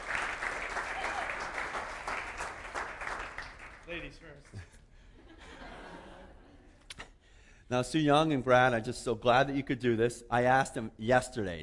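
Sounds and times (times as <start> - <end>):
audience applauding two guests invited onto a stage: 0.0 - 4.0
speech: 4.0 - 4.8, 7.7 - 11.6
laughter: 4.5 - 6.8.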